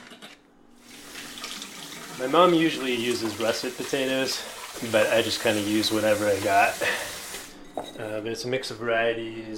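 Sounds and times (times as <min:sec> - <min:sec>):
tap water running: 0:00.8 - 0:07.6
speech: 0:02.2 - 0:07.1, 0:08.0 - 0:09.5.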